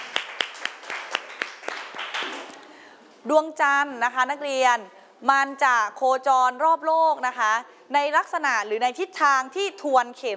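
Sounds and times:
classroom applause for a student: 0.0 - 2.7
speech: 3.2 - 10.3.

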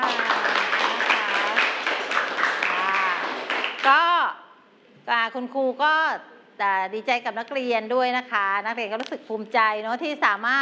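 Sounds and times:
students clapping hands: 0.0 - 4.1
speech: 3.9 - 4.1, 5.1 - 10.6.

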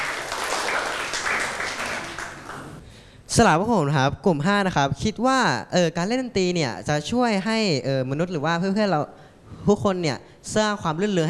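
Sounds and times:
classroom applause: 0.0 - 2.8
speech: 3.4 - 11.2.

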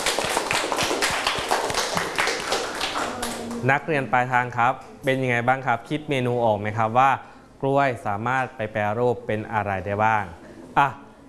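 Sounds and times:
classroom applause: 0.0 - 3.8
speech: 3.6 - 11.2.

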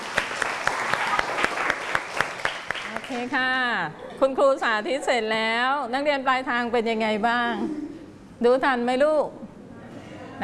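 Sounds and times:
children clapping for a classmate in a class: 0.0 - 3.3
speech: 3.1 - 7.8, 8.4 - 9.4.

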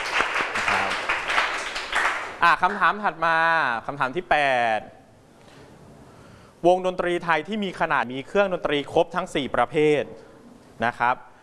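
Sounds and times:
classroom applause for a group of students after a music quiz answer: 0.0 - 2.8
speech: 2.4 - 5.0, 6.6 - 10.2, 10.8 - 11.3.

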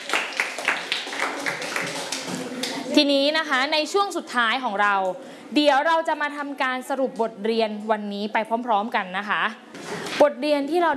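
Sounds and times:
children clapping for a classmate in a classroom: 0.0 - 2.9
speech: 3.0 - 10.9.

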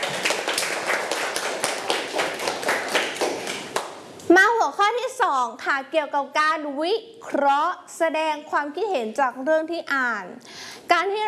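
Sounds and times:
children clapping hands: 0.0 - 4.0
speech: 5.3 - 11.2.

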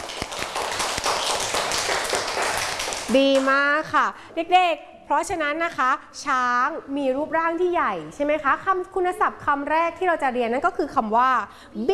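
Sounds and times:
children clapping hands: 0.0 - 3.5
speech: 3.1 - 11.9.

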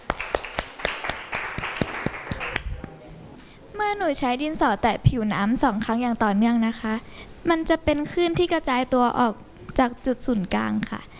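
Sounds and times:
classroom applause: 0.0 - 3.0
speech: 3.9 - 11.1.

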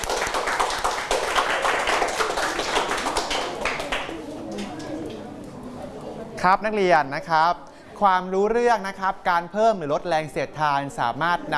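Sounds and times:
students clapping for a classmate: 0.0 - 5.3
speech: 6.4 - 11.5.

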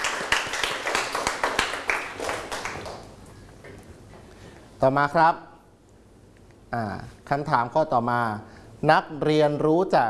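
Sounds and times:
students clapping in a classroom: 0.0 - 3.2
speech: 4.8 - 5.5, 6.7 - 10.0.

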